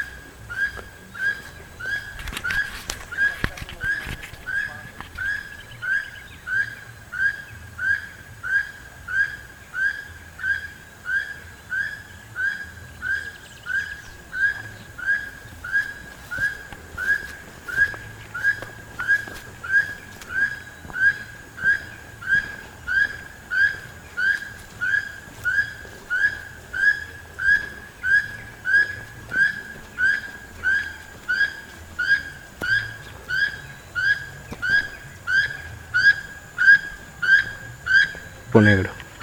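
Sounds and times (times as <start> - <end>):
keel-billed toucan Ramphastos sulfuratus calling: 0.0 - 39.2.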